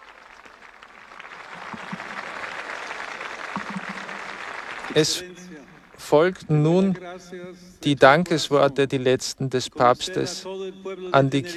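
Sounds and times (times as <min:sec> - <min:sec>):
jubilant crowd cheering and applauding: 0:00.0 - 0:06.1
speech: 0:05.0 - 0:05.4, 0:06.1 - 0:11.5.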